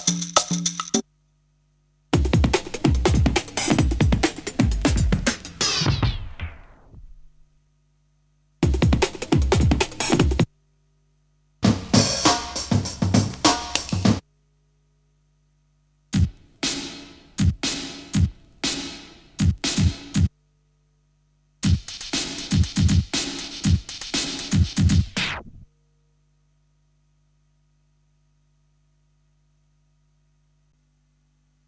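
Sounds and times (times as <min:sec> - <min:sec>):
breakbeat drums: 0:00.0 - 0:01.0, 0:02.1 - 0:07.5, 0:08.6 - 0:10.5, 0:11.6 - 0:14.2, 0:16.2 - 0:20.3, 0:21.6 - 0:25.7.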